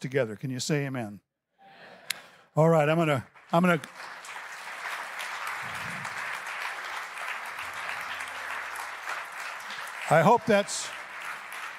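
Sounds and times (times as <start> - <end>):
speech: 0.0 - 1.3, 2.6 - 4.2, 10.1 - 11.0
audience clapping: 2.7 - 11.7.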